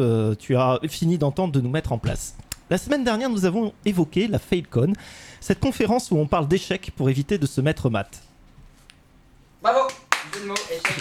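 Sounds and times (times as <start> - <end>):
speech: 0.0 - 8.3, 9.6 - 10.9
hands clapping: 9.8 - 10.9.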